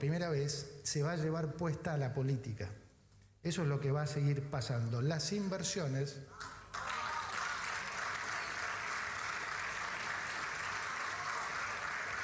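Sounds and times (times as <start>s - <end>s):
speech: 0.0s - 2.8s, 3.4s - 6.6s
audience applause: 6.7s - 12.2s.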